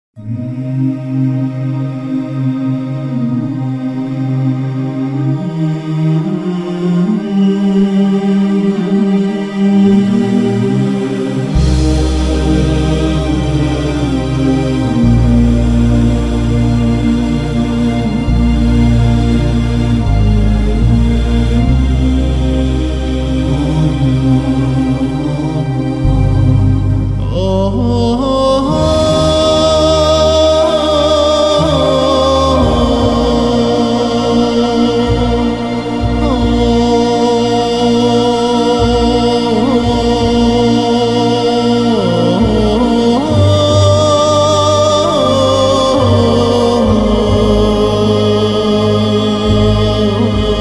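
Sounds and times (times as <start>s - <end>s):
vocal sound: 0.2s - 50.6s.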